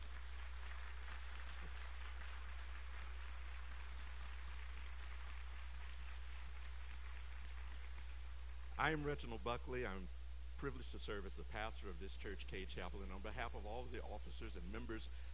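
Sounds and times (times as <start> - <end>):
audience applause: 0.0 - 8.7
speech: 8.8 - 15.3.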